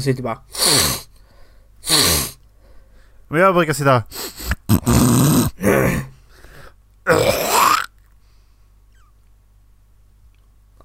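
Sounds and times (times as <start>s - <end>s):
speech: 0.0s - 1.0s, 3.3s - 6.1s
person blowing nose: 0.5s - 1.2s, 1.8s - 2.4s, 4.1s - 5.6s.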